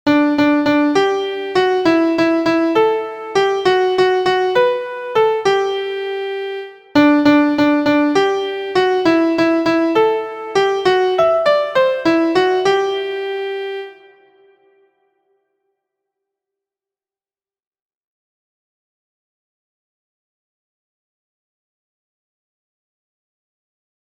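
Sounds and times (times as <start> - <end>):
MIDI music: 0.1 - 14.8.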